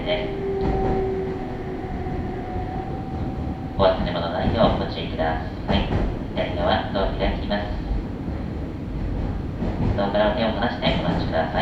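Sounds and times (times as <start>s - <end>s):
speech: 0.0s - 0.4s, 3.8s - 7.7s, 10.0s - 11.5s
train high tonal whine: 0.0s - 5.0s
local commuter train running on rails: 0.0s - 11.5s.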